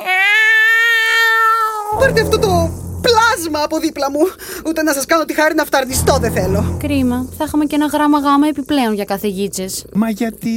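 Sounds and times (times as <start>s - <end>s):
cat meowing: 0.0s - 2.0s
speech: 2.0s - 10.5s.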